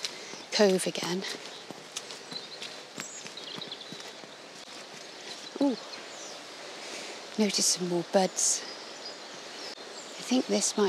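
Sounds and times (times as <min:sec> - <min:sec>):
footsteps on an outdoor path: 0:00.0 - 0:07.7
speech: 0:00.6 - 0:01.5, 0:05.6 - 0:06.0, 0:07.4 - 0:08.7, 0:10.3 - 0:10.8.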